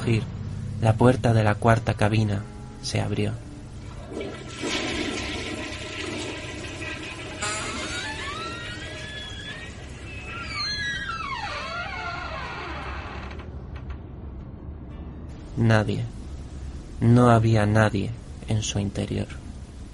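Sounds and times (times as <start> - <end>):
speech: 0.0 - 3.4, 15.6 - 16.2, 17.0 - 19.4
toilet flushing: 3.8 - 10.1
squealing whining pipe tones: 6.0 - 13.3.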